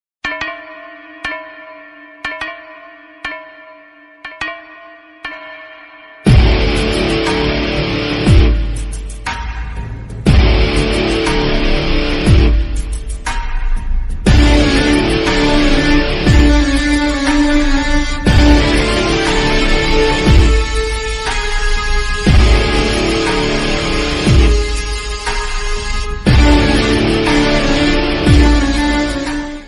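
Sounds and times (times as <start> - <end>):
Tamil ringtone background music: 6.2 - 29.6.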